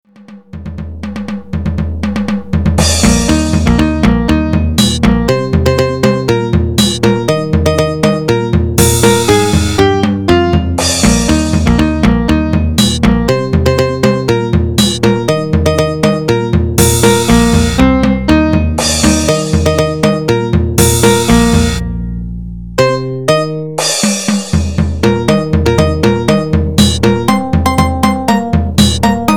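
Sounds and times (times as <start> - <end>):
electro music: 0.2 - 29.3.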